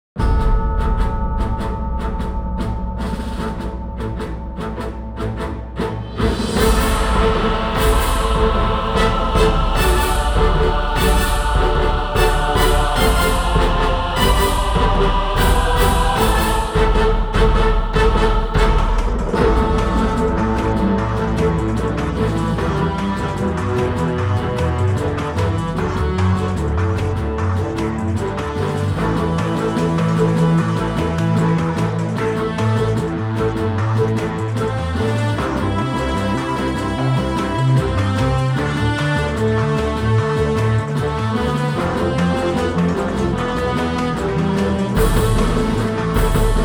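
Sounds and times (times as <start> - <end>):
main theme music: 0.2 - 46.6.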